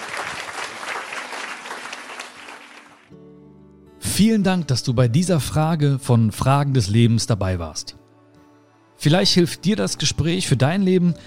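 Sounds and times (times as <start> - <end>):
audience applause: 0.0 - 3.1
speech: 4.2 - 8.0, 9.0 - 11.2.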